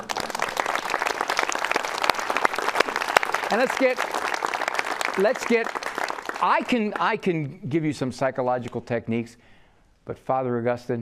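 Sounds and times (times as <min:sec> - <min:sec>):
audience applause: 0:00.0 - 0:07.2
speech: 0:03.5 - 0:04.2, 0:05.2 - 0:05.8, 0:06.4 - 0:09.4, 0:10.1 - 0:10.9.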